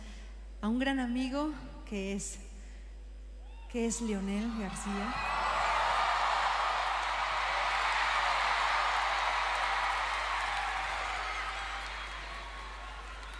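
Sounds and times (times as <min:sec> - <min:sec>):
speech: 0:00.6 - 0:02.5, 0:03.7 - 0:05.3
audience applause: 0:04.4 - 0:13.3.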